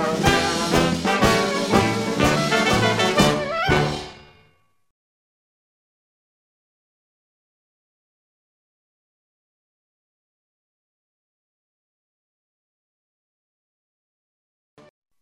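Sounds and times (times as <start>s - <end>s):
New Orleans march music: 0.0s - 4.6s.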